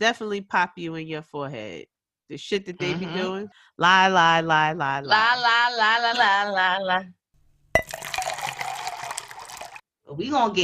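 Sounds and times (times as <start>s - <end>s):
speech: 0.0s - 7.2s, 10.1s - 10.6s
drink being poured with a bubbly gurgle: 7.8s - 9.8s.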